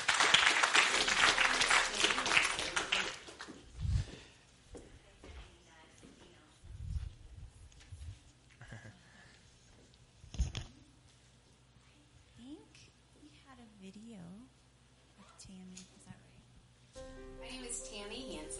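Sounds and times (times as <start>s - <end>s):
audience applause: 0.0s - 3.6s.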